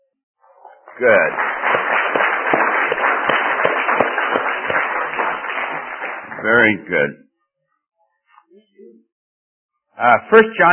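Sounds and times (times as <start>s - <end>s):
audience applause: 0.6s - 6.8s
speech: 1.0s - 1.5s, 6.4s - 7.2s, 10.0s - 10.7s.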